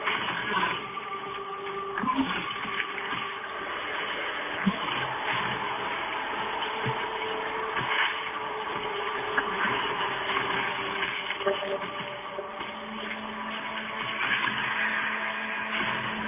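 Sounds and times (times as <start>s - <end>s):
video game background noise: 0.0s - 16.2s
voicemail message: 11.4s - 12.6s.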